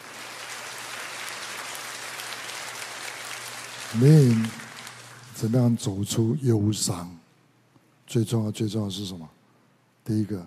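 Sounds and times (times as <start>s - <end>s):
warm steady applause from a crowd: 0.0s - 5.7s
speech: 3.9s - 4.6s, 5.4s - 7.2s, 8.1s - 9.4s, 10.0s - 10.4s.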